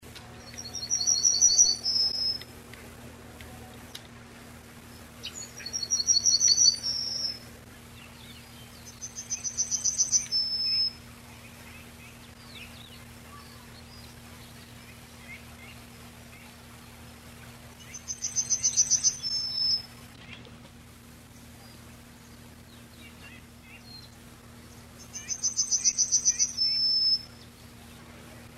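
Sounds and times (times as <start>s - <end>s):
faint steady hum: 0.0s - 28.5s
Yellowhammer song: 0.2s - 2.5s, 4.8s - 20.5s, 21.3s - 28.5s.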